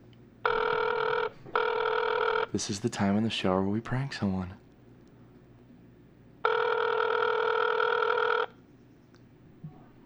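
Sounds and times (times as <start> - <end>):
phone call ringing: 0.4 - 2.7, 6.4 - 8.6
speech: 2.5 - 4.6.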